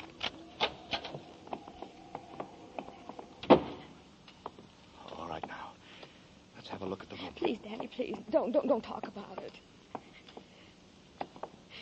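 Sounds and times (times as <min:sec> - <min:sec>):
door being opened: 0:00.0 - 0:03.9
speech: 0:07.4 - 0:09.8.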